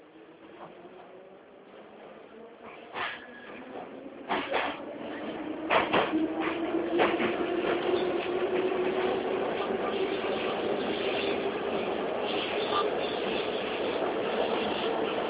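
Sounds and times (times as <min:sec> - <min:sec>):
steady mechanical hum of a Moscow metro train: 0:00.0 - 0:15.2
Moscow metro train doors sliding shut: 0:02.6 - 0:08.0.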